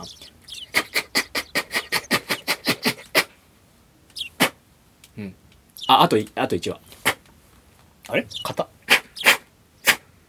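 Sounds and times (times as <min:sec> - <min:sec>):
sparrows chirping loudly outside: 0:00.0 - 0:03.3, 0:04.1 - 0:04.5, 0:05.7 - 0:07.2, 0:08.1 - 0:10.0
speech: 0:05.2 - 0:06.9, 0:08.1 - 0:08.8.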